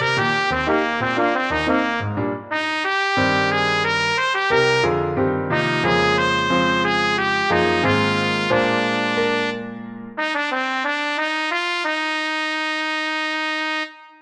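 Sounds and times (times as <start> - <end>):
piano: 0.0 - 14.2
trumpet: 0.0 - 14.2.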